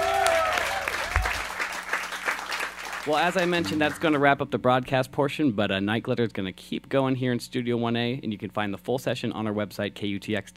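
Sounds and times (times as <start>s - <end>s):
audience clapping in a radio station studio: 0.0s - 4.4s
speech: 3.1s - 10.5s.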